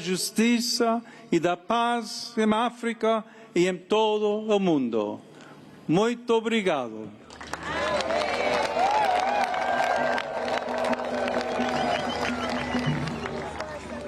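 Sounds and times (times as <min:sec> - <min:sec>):
speech: 0:00.0 - 0:05.3, 0:05.9 - 0:07.2
audience applause after papal mass: 0:07.3 - 0:14.0.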